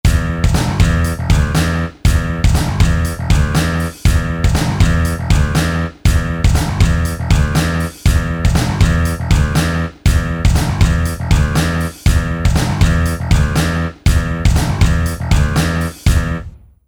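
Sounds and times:
metal music: 0.1s - 16.6s.

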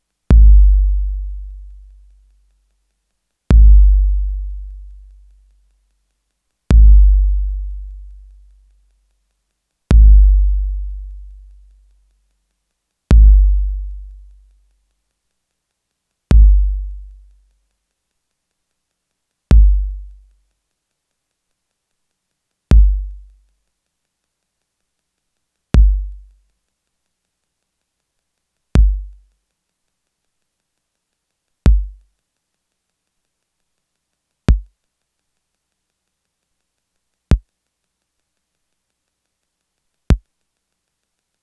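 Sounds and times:
drum machine bass drum sample: 0.3s - 2.0s, 3.5s - 5.2s, 6.7s - 8.4s, 9.9s - 11.5s, 13.1s - 14.3s, 16.3s - 17.2s, 19.5s - 20.2s, 22.7s - 23.3s, 25.8s - 26.3s, 28.8s - 29.2s, 31.7s - 32.0s, 34.5s - 34.7s.

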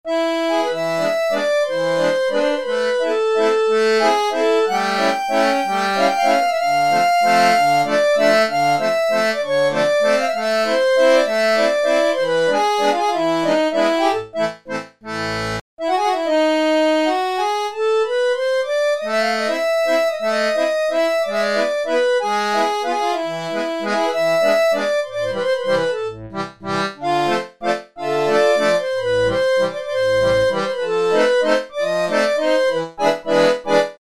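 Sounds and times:
accordion: 0.1s - 33.9s.

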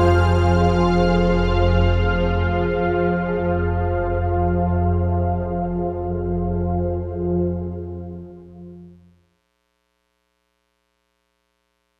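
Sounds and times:
synth orchestra mix: 0.0s - 9.0s.

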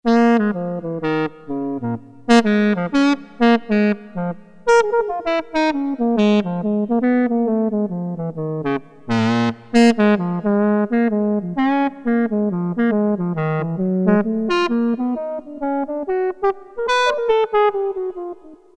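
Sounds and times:
saxophone: 0.1s - 18.7s.

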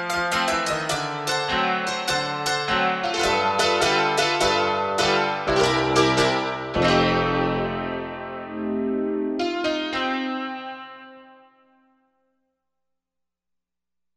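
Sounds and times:
tacky piano: 0.0s - 11.2s.

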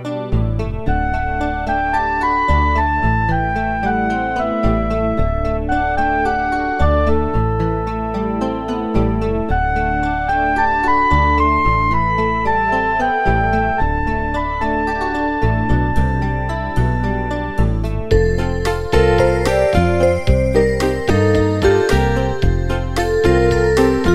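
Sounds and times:
folk music: 0.3s - 24.1s.

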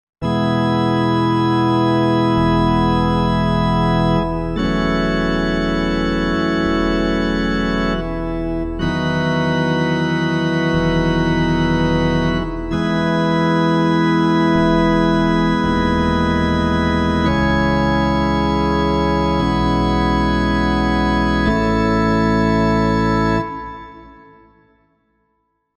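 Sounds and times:
cathedral organ: 0.2s - 24.6s.

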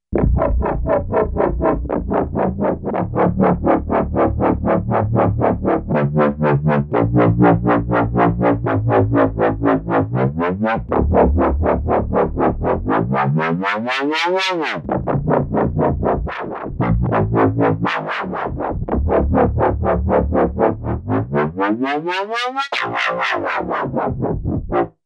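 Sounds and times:
bass: 0.0s - 25.0s.

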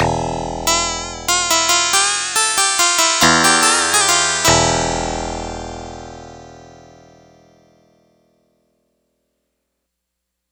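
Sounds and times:
synth sitar: 0.0s - 6.9s.

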